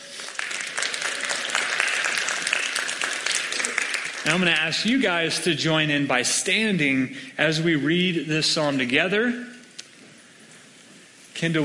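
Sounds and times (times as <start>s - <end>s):
crowd round of applause: 0.0s - 4.7s
speech: 4.2s - 9.5s, 11.4s - 11.6s.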